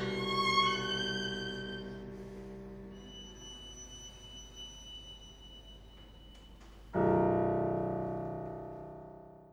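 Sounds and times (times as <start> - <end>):
piano trio playing: 0.0 - 4.5, 6.9 - 9.5.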